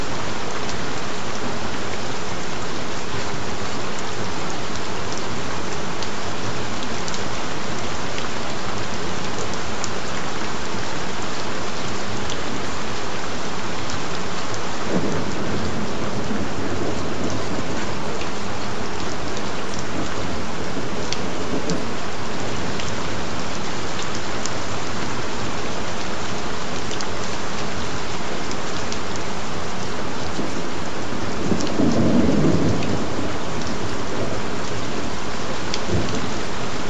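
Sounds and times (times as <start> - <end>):
gentle rain: 0.0 - 36.8
thunder: 14.9 - 18.1, 31.2 - 35.1, 35.8 - 36.4.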